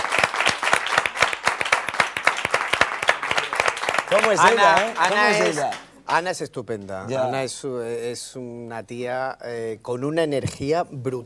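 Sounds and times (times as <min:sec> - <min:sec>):
studio audience applause: 0:00.0 - 0:06.0
speech: 0:04.1 - 0:11.2.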